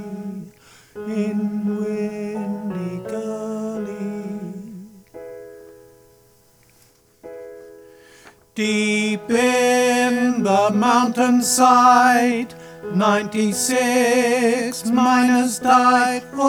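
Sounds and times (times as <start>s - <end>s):
tenor singing: 0.0s - 5.2s, 8.5s - 16.4s.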